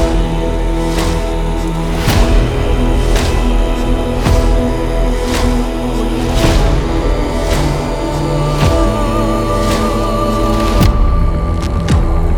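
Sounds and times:
medieval viking cinematic music: 0.0s - 12.3s.

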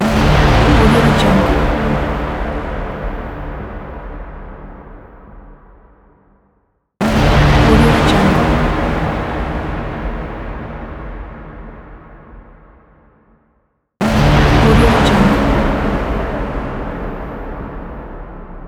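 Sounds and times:
cinematic trailer mega horn: 0.0s - 6.0s, 7.0s - 12.8s, 14.0s - 18.6s.

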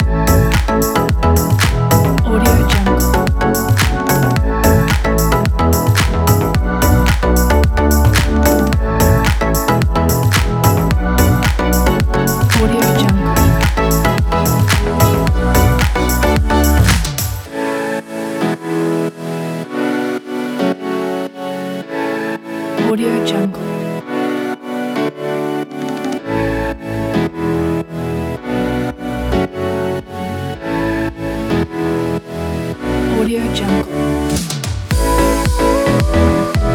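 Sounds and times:
tropical house music: 0.0s - 36.7s.

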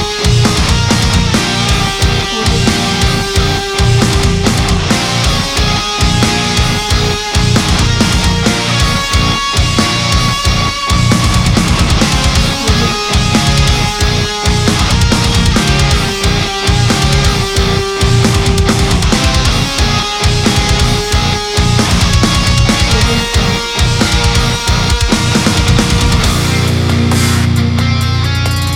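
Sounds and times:
progressive metal music: 0.0s - 28.7s.

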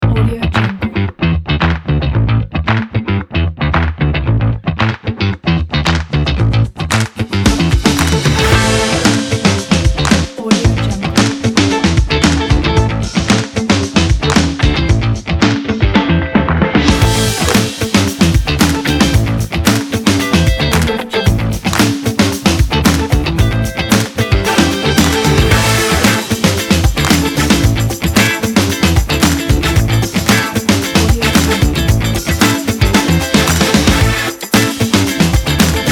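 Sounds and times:
old school funk music: 0.0s - 35.9s.

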